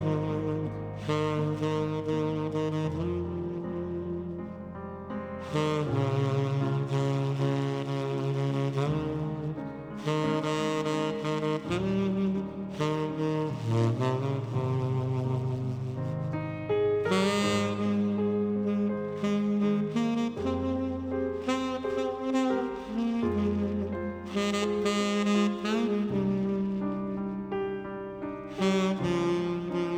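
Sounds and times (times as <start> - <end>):
saxophone: 0.0 - 29.9.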